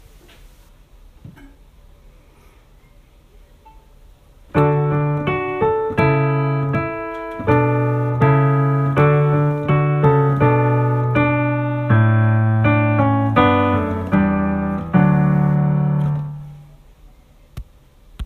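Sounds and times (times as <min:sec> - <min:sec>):
piano: 0:04.5 - 0:17.0.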